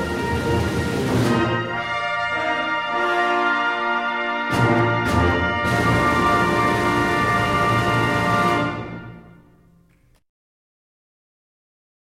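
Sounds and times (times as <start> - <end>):
brass band fanfare: 0.0 - 9.4.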